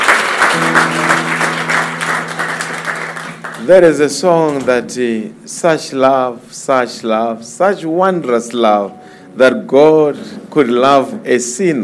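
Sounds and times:
audience applause: 0:00.0 - 0:03.8
speech: 0:03.7 - 0:11.8.

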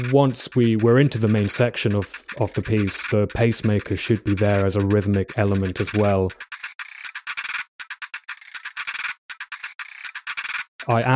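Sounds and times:
speech: 0:00.0 - 0:06.5, 0:10.9 - 0:11.1
creaky worn ratchet winding up: 0:00.0 - 0:11.1.

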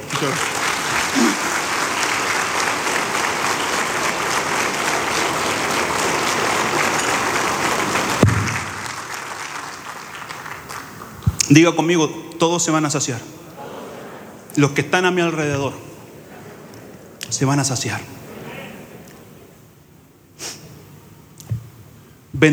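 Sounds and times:
laughter: 0:00.0 - 0:08.2, 0:13.5 - 0:19.6
audience applause: 0:00.0 - 0:11.4
speech: 0:00.2 - 0:00.6, 0:11.5 - 0:13.4, 0:14.6 - 0:15.9, 0:17.3 - 0:18.2.

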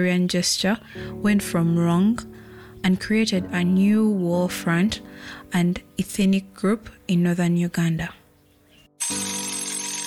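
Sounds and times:
speech: 0:00.0 - 0:08.2, 0:09.0 - 0:09.3
alarm clock ringing: 0:09.0 - 0:10.0.

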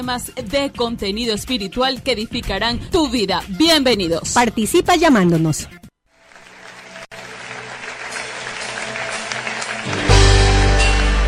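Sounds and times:
speech: 0:00.0 - 0:05.8
audience applauding: 0:06.2 - 0:11.2.

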